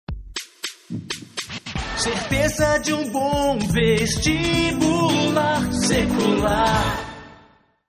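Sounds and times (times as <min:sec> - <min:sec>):
jingle: 0:02.3 - 0:07.6.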